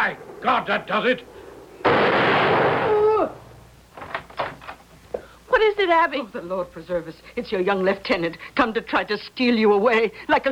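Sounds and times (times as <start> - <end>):
speech: 0.0 - 2.1, 5.6 - 10.4
period pistol firing a ball: 1.8 - 3.0.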